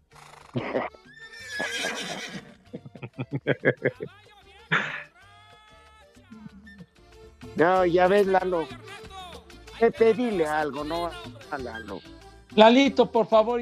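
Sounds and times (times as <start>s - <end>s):
mare neighing: 0.1s - 2.8s
speech: 0.5s - 1.0s, 3.5s - 4.2s, 7.6s - 8.8s, 9.8s - 13.5s
laughter: 0.6s - 1.0s, 2.6s - 5.2s.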